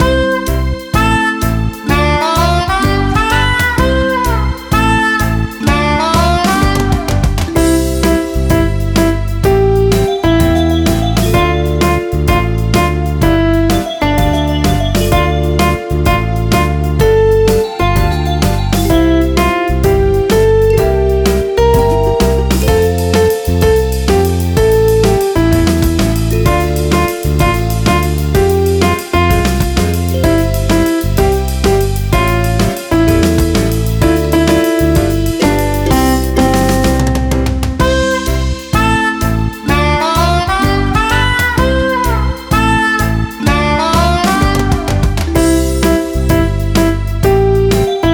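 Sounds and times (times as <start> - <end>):
karaoke singing: 0.0 - 48.1.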